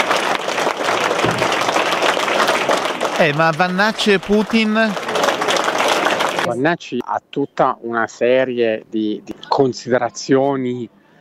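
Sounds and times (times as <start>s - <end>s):
audience applause: 0.0s - 6.6s
speech: 3.2s - 5.0s, 6.4s - 11.0s.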